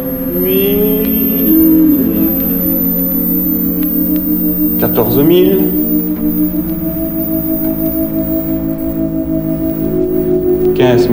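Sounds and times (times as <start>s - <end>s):
high-pitched test tone near 12,000 Hz: 0.0s - 11.1s
low rumble and hum: 0.0s - 11.1s
speech: 5.0s - 7.2s, 10.8s - 11.1s.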